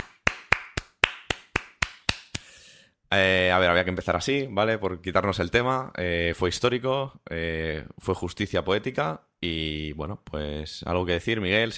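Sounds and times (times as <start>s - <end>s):
hand claps: 0.0s - 2.6s
speech: 3.1s - 11.7s.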